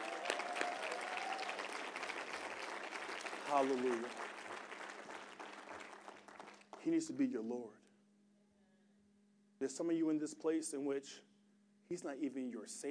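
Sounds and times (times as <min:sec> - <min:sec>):
audience hand clapping: 0:00.0 - 0:07.2
speech: 0:03.5 - 0:04.3, 0:06.8 - 0:07.8, 0:09.6 - 0:11.3, 0:11.9 - 0:12.8.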